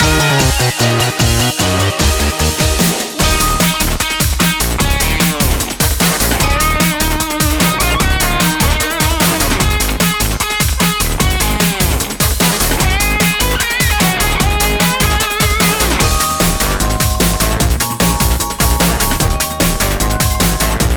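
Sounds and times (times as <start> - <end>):
theme music: 0.0 - 10.4, 11.0 - 20.9.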